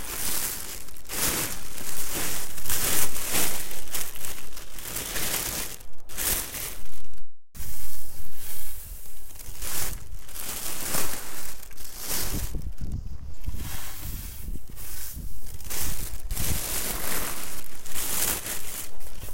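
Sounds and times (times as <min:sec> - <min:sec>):
dried daikon strips gathered into a bag rustling: 0:00.0 - 0:19.3.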